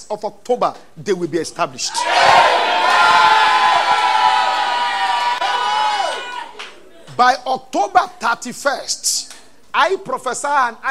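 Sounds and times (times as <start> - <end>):
speech: 0.1 - 2.4, 7.2 - 10.8
audience screaming amen: 1.9 - 6.6.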